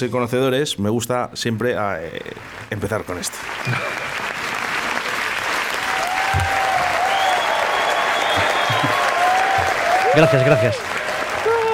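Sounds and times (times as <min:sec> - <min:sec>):
speech: 0:00.0 - 0:04.4, 0:10.2 - 0:11.0
audience applause: 0:02.4 - 0:11.7
laughter: 0:03.6 - 0:11.7
thin whistles: 0:07.1 - 0:09.0.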